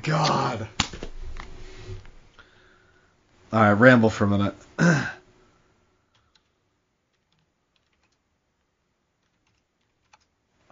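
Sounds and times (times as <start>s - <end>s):
speech: 0.0s - 0.9s, 3.5s - 5.2s
faint tapping on a computer keyboard: 7.1s - 8.2s, 9.2s - 10.3s.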